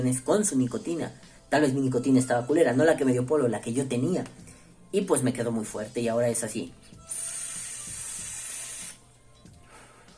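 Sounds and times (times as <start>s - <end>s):
speech: 0.0s - 7.2s
e-cigarette vape hit hiss: 7.0s - 9.1s
thin high whistle: 7.1s - 9.0s.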